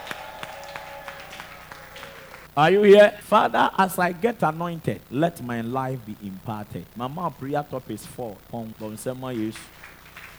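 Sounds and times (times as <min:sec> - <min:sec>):
audience clapping in rhythm: 0:00.0 - 0:02.5, 0:08.8 - 0:10.3
speech: 0:02.6 - 0:09.9.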